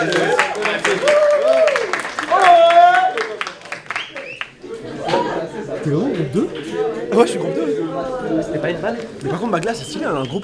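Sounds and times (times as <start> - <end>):
group clapping hands: 0.0 - 4.6, 5.7 - 7.4
speech: 5.9 - 7.6, 8.2 - 10.4.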